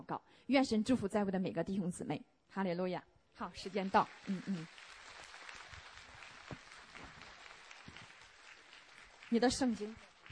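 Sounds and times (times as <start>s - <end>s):
speech: 0.0s - 4.8s, 9.3s - 10.1s
audience applause: 3.6s - 10.2s.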